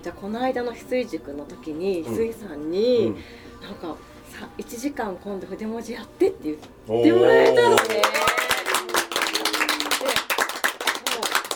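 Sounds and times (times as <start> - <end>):
speech: 0.0 - 8.2
crowd applause: 7.4 - 11.5.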